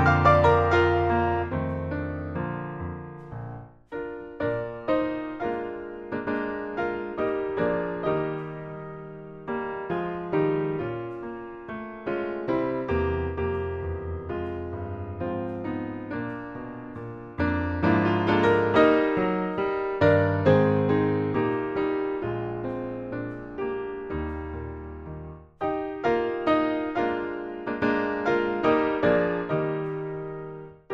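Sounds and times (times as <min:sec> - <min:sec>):
piano backing track: 0:00.0 - 0:30.9.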